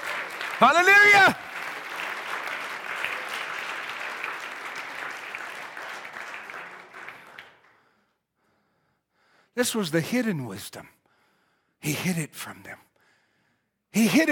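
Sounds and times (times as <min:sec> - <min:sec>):
audience applause: 0:00.0 - 0:07.8
speech: 0:00.6 - 0:01.5, 0:09.6 - 0:11.0, 0:11.8 - 0:12.9, 0:13.9 - 0:14.3.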